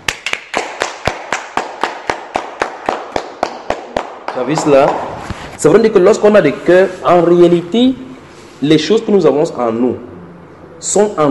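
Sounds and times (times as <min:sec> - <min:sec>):
audience clapping in rhythm: 0:00.0 - 0:05.2
speech: 0:04.4 - 0:08.0, 0:08.6 - 0:10.1, 0:10.8 - 0:11.3.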